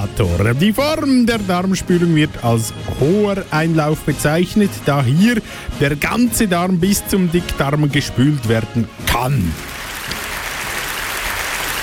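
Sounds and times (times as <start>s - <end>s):
speech: 0.1s - 9.8s
audience applause on a German show: 9.3s - 11.8s.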